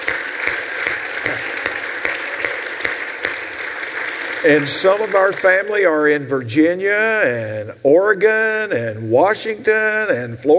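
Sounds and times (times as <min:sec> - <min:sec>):
audience applause: 0:00.0 - 0:05.9
speech: 0:04.4 - 0:10.5.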